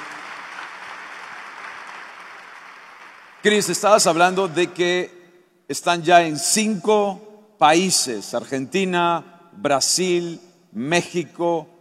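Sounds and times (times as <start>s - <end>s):
audience applause: 0.0s - 3.5s
speech: 3.4s - 11.7s.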